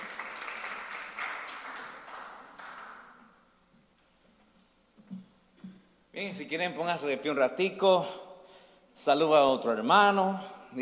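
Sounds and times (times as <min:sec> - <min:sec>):
audience applause: 0:00.0 - 0:03.2
speech: 0:06.2 - 0:08.2, 0:09.0 - 0:10.7.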